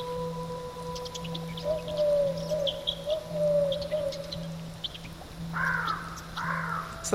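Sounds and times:
steady low drone: 0.0s - 7.0s
vocally imitated birdsong: 0.0s - 7.1s.

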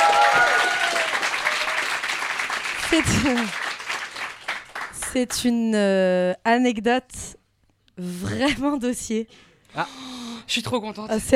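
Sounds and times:
audience applauding: 0.0s - 5.3s
speech: 2.9s - 3.6s, 5.1s - 7.4s, 8.0s - 11.3s.

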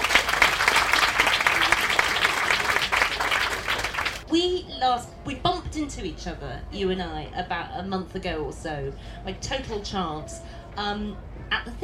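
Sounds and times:
audience clapping: 0.0s - 4.2s
speech: 4.4s - 11.8s.

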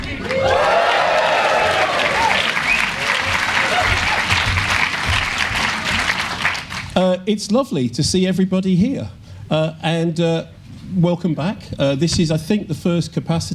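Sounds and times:
audience applause at a live event: 0.0s - 7.0s
speech: 7.2s - 13.5s.

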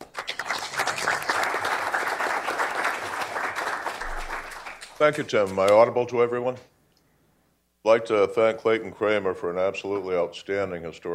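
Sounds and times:
audience applause welcoming a speaker at a talk: 0.0s - 5.2s
speech: 5.0s - 6.7s, 7.8s - 11.1s.

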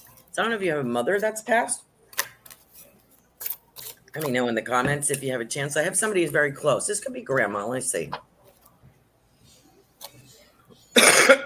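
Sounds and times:
speech: 0.4s - 1.9s, 4.2s - 8.3s
person coughing as if choking: 10.9s - 11.4s.

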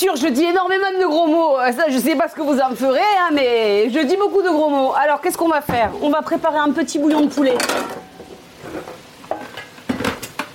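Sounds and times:
speech: 0.0s - 8.9s
vegetables sizzling in a wok: 0.0s - 10.5s
utensil scraping and clinking against the wok: 7.1s - 10.5s.

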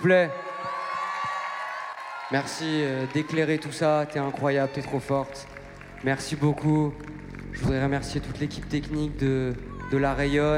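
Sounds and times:
speech: 0.0s - 0.5s, 2.3s - 10.5s
cheering and whoops: 0.0s - 7.2s
audience applause: 0.0s - 10.5s.

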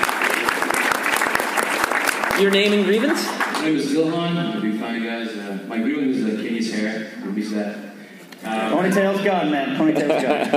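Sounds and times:
audience applause: 0.0s - 3.8s
speech: 2.4s - 10.5s
laughter: 9.7s - 10.5s.

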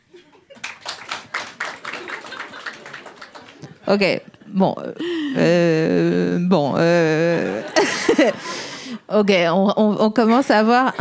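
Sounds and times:
laughter: 0.1s - 4.6s, 6.9s - 8.7s
audience applause: 0.5s - 3.9s
speech: 3.9s - 10.9s.

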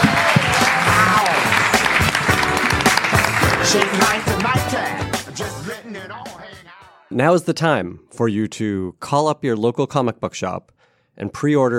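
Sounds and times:
audience applause: 0.0s - 5.4s
speech: 3.7s - 4.5s, 7.1s - 11.7s.

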